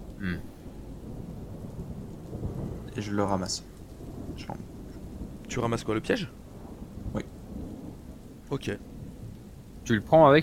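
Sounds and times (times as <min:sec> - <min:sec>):
thunder rumbling overhead: 0:00.0 - 0:10.4
speech: 0:03.0 - 0:03.8, 0:04.4 - 0:04.7, 0:05.5 - 0:06.4, 0:07.1 - 0:07.3, 0:08.5 - 0:08.9, 0:09.8 - 0:10.4.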